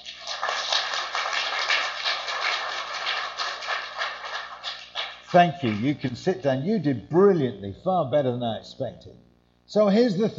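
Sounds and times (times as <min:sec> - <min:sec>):
crowd applauding: 0:00.0 - 0:06.1
speech: 0:05.3 - 0:10.3.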